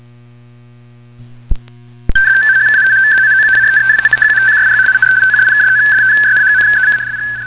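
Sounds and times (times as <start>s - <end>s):
RTTY radioteletype signal: 2.1s - 7.4s.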